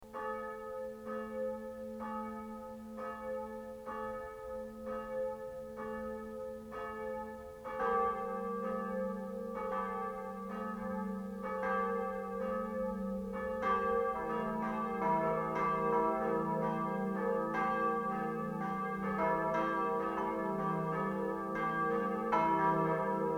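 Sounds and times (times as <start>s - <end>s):
church bells ringing in Maria Taferl: 0.1s - 23.3s.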